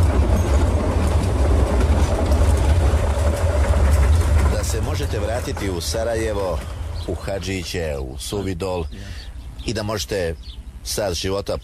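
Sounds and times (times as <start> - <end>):
train rattling: 0.0 - 8.0
train rolling along the rails: 0.0 - 11.2
speech: 5.4 - 11.6.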